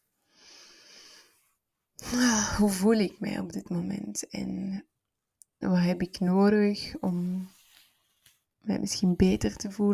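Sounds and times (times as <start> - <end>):
slow breathy exhalation during a guided relaxation exercise: 0.2 - 1.6
speech: 2.1 - 4.9, 5.6 - 7.6, 8.6 - 9.9.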